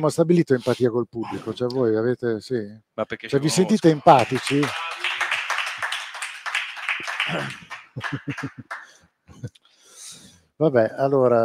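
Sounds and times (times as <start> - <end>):
speech: 0.0 - 4.9, 7.3 - 9.6, 10.6 - 11.4
laughter: 3.4 - 5.8, 7.0 - 9.5
audience applause: 3.5 - 9.0.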